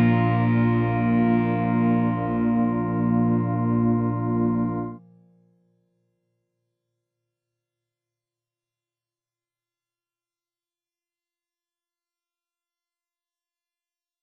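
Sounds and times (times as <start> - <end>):
C chromatic scale: 0.0 - 5.0.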